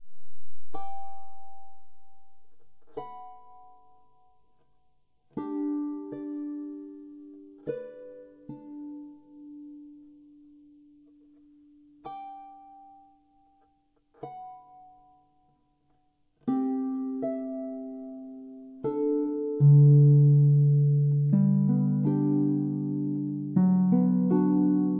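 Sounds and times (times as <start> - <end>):
harp melody in G: 0.0 - 4.6, 5.3 - 10.1, 16.5 - 24.9.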